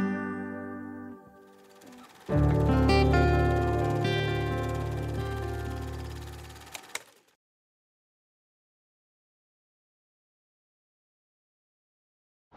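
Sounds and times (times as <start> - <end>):
acoustic music: 0.0 - 6.9.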